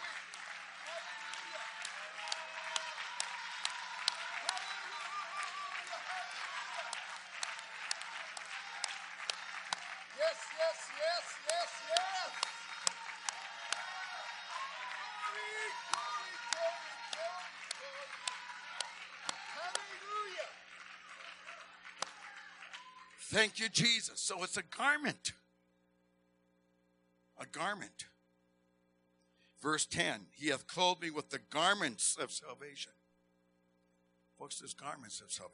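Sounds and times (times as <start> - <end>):
audience clapping hands: 0.0 - 24.0
speech: 10.3 - 12.5, 23.3 - 25.4, 27.6 - 28.1, 29.6 - 33.0, 34.4 - 35.5.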